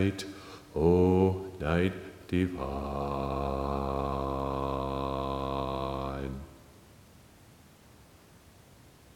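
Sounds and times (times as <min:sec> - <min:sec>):
bass: 0:00.1 - 0:06.5.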